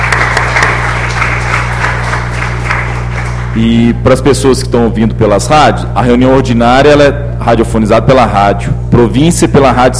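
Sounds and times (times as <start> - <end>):
audience applause for student councillors: 0.0 - 3.8
speech: 3.6 - 9.9.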